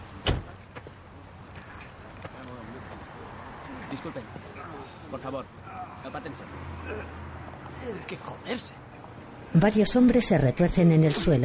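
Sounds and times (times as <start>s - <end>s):
car door slamming as a police officer gets out at night: 0.2s - 0.5s
speech: 3.9s - 8.8s, 9.5s - 11.4s.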